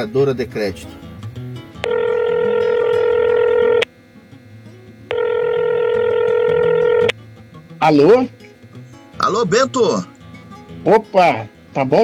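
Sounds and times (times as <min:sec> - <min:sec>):
speech: 0:00.0 - 0:01.1, 0:07.8 - 0:08.4, 0:09.2 - 0:10.1, 0:10.8 - 0:12.0
telephone ringing tones before a call: 0:01.8 - 0:03.9, 0:05.0 - 0:07.2.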